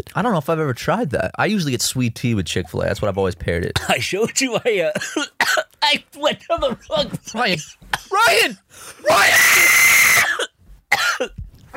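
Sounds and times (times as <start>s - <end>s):
speech: 0.0s - 11.4s
person coughing after water down wrong pipe: 4.9s - 5.7s, 6.9s - 8.5s, 10.2s - 11.7s.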